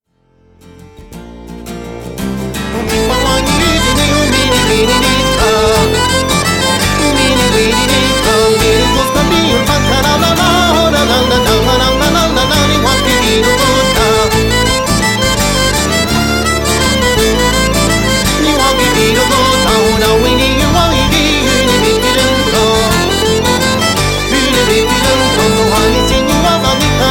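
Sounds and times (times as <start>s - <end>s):
mountain gavotte dance tune: 2.0s - 27.0s.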